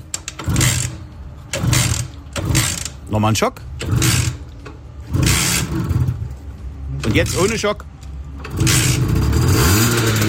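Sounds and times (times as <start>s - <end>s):
Simson S51 moped engine running and revving: 0.4s - 3.0s, 3.8s - 6.4s, 8.3s - 10.2s
speech: 3.1s - 4.2s, 7.1s - 7.9s.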